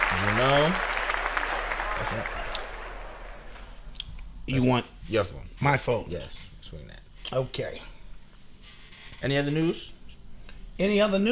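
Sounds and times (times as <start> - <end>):
small group clapping in celebration: 0.0 - 3.9
speech: 0.2 - 1.0, 2.1 - 2.4, 4.5 - 7.9, 9.2 - 10.0, 10.8 - 11.2.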